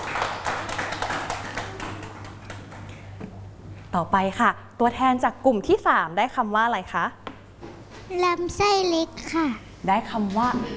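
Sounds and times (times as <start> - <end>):
classroom clapping for a student: 0.0 - 3.0
speech: 3.9 - 7.2, 8.1 - 10.7.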